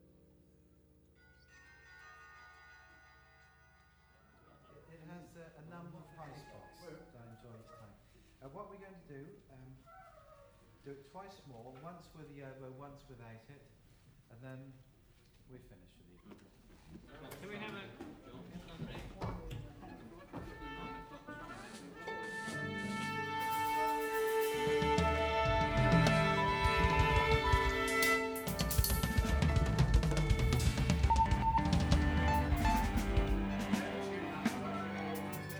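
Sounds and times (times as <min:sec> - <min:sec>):
laughter: 0:17.1 - 0:22.8, 0:24.8 - 0:35.5
orchestra playing: 0:20.6 - 0:35.5
bellscape: 0:21.3 - 0:35.5.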